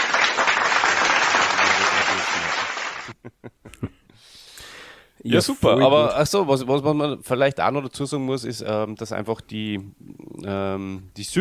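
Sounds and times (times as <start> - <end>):
applause from many hands: 0.0 - 3.2
speech: 5.2 - 11.4.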